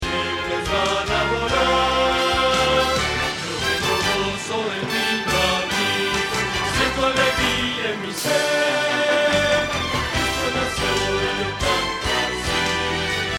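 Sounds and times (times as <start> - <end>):
bass: 0.0 - 13.3.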